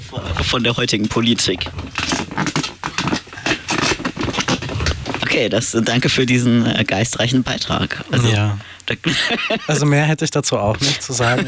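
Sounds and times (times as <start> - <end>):
studio chair creaking and scraping: 0.0 - 11.4
speech: 0.1 - 2.0, 5.4 - 11.4
laughter: 7.2 - 11.4.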